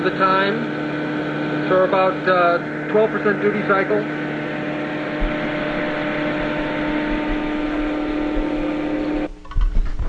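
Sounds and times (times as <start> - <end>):
speech: 0.0 - 0.9, 1.7 - 4.4
electric motor hum from spinning rotor: 0.0 - 9.4.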